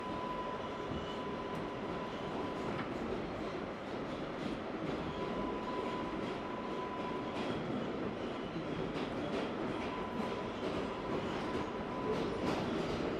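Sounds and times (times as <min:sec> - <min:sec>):
empty NYC subway train interior riding between stations: 0:00.0 - 0:13.1.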